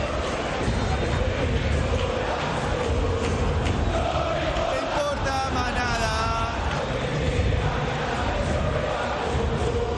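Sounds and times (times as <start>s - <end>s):
huge stadium crowd roaring and applauding: 0.0s - 9.9s.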